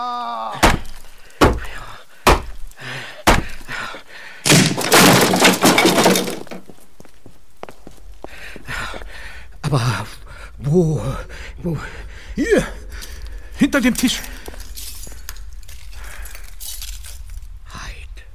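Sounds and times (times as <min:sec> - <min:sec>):
door being forced open and smashed: 0:00.6 - 0:02.7, 0:03.3 - 0:03.6, 0:04.5 - 0:06.7
speech: 0:09.7 - 0:12.7, 0:13.6 - 0:14.3.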